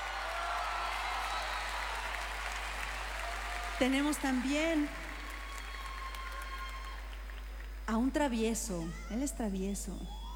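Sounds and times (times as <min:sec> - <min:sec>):
audience applause: 0:00.0 - 0:07.9
speech: 0:03.8 - 0:05.0, 0:07.9 - 0:10.2.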